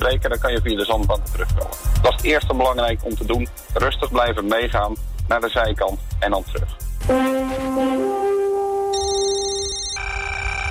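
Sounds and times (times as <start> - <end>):
speech: 0.1 - 8.0
radio show electronic alarm ringtone: 8.9 - 10.6.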